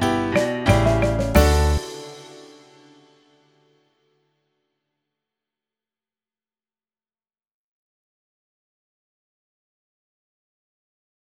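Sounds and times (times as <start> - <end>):
crazy waltz music: 0.0 - 2.9.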